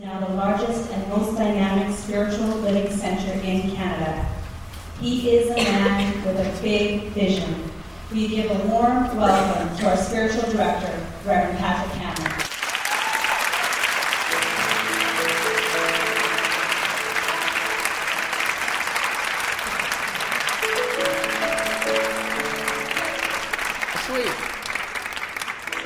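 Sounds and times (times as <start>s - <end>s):
speech: 0.0s - 4.4s, 5.0s - 12.4s
audience applause: 12.3s - 25.8s.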